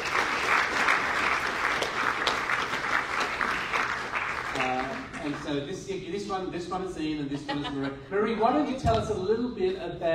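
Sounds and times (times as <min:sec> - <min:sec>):
audience applause welcoming two speakers onto the stage: 0:00.0 - 0:05.6
speech: 0:05.5 - 0:10.1
laughter: 0:07.2 - 0:08.8.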